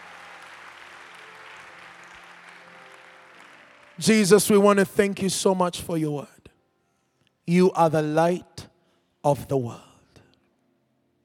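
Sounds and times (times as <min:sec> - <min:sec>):
audience hand clapping: 0:00.0 - 0:04.7
speech: 0:04.0 - 0:06.4, 0:07.5 - 0:09.9.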